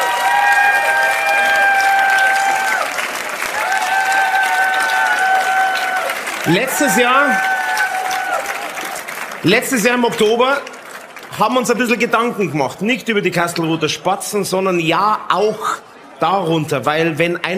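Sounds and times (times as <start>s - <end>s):
big round of audience applause: 0.0s - 12.3s
speech: 6.5s - 7.5s, 9.4s - 10.7s, 11.3s - 17.5s.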